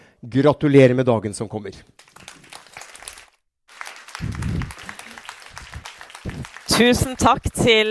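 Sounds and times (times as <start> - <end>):
speech: 0.2 - 2.2, 6.8 - 7.8
university audience applause welcoming a speaker: 2.0 - 7.8.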